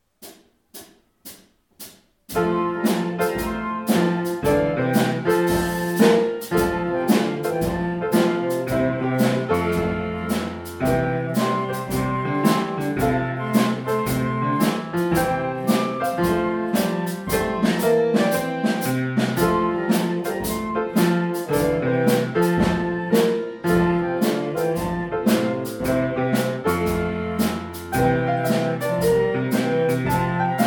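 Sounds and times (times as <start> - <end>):
big band music: 0.8 - 30.6.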